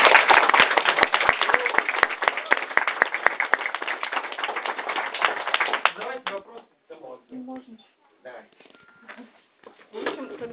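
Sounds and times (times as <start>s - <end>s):
audience applause: 0.0s - 6.4s.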